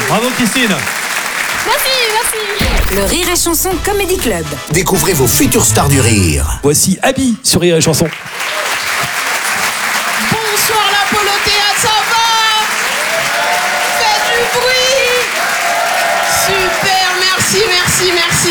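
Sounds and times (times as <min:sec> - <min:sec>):
audience applause in comedy club: 0:00.0 - 0:03.4, 0:07.7 - 0:18.4
speech: 0:00.2 - 0:01.0, 0:01.7 - 0:08.8, 0:16.5 - 0:18.4.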